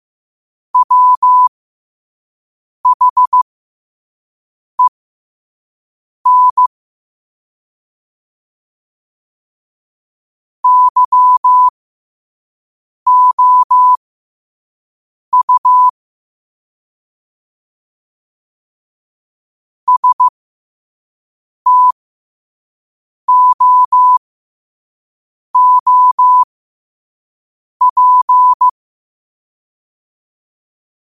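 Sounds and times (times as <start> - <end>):
morse code at 5 wpm: 0.8 - 1.5, 2.9 - 3.4, 6.3 - 6.7, 10.6 - 11.7, 13.1 - 14.0, 15.3 - 15.9, 19.9 - 20.3, 21.7 - 22.0, 23.3 - 24.2, 25.6 - 26.5, 27.8 - 28.7.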